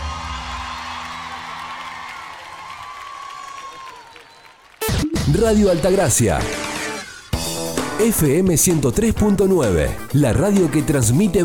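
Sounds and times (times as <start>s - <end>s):
loud applause: 0.0s - 5.0s
crowd cheering: 0.0s - 6.9s
speech: 5.3s - 6.7s, 8.0s - 11.4s.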